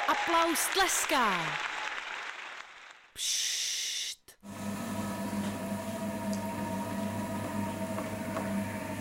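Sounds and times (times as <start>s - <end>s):
speech: 0.1s - 1.7s, 3.2s - 3.6s
potter's wheel spinning: 4.4s - 8.9s.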